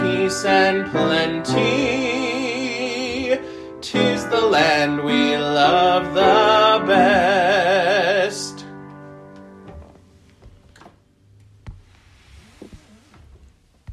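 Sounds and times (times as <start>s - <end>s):
country vocal track: 0.0s - 8.7s.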